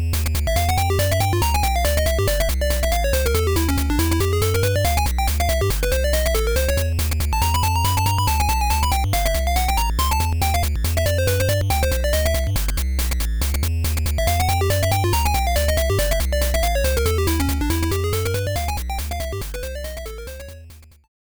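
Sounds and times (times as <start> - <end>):
swing music: 0.2 - 20.4.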